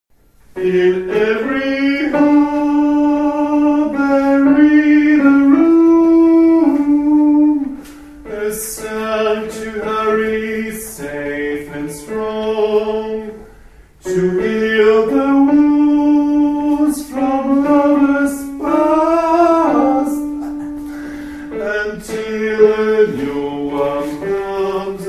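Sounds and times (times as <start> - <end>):
tenor voices singing: 0.6 - 20.8, 21.4 - 25.0.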